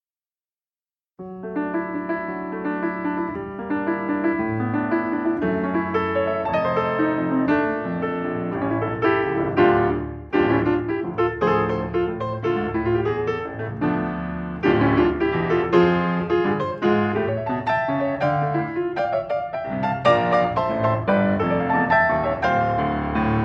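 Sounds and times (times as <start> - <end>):
piano: 1.2 - 23.4.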